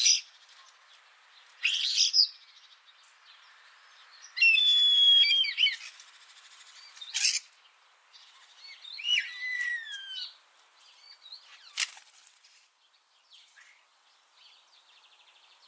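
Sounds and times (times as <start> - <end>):
common starling giving rasping and whistled calls: 1.6 - 2.4, 4.4 - 6.0, 6.9 - 7.5, 8.7 - 10.4.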